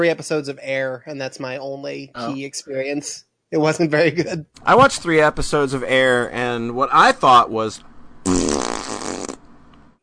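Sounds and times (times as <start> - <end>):
speech: 0.0 - 8.4
fart: 8.2 - 9.5.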